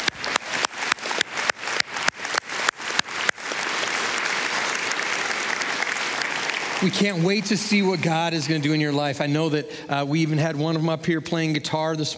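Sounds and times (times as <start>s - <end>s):
audience applause: 0.0s - 9.4s
speech: 6.8s - 12.1s.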